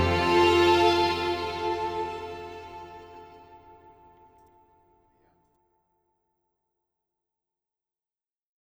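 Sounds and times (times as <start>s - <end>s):
introspective piano and strings music: 0.0s - 3.9s.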